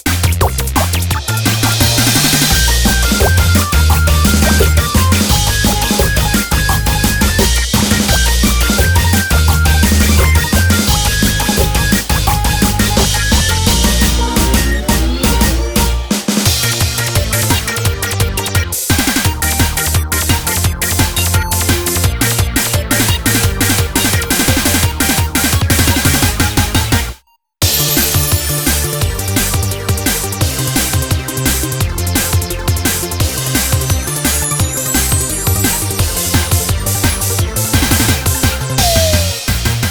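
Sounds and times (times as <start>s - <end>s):
off vocal instrumental music: 0.2s - 39.8s.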